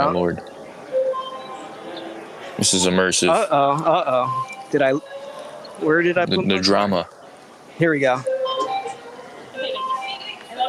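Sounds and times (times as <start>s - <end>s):
speech: 0.0s - 0.5s, 2.6s - 5.2s, 5.8s - 7.2s, 7.8s - 8.3s
transit fare card reader beeping: 0.9s - 2.2s, 4.1s - 6.6s, 8.2s - 10.6s.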